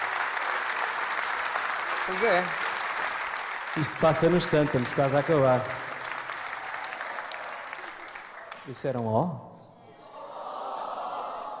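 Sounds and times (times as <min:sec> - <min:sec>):
audience applause: 0:00.0 - 0:08.8
speech: 0:02.1 - 0:02.6, 0:03.8 - 0:05.9, 0:08.7 - 0:09.5.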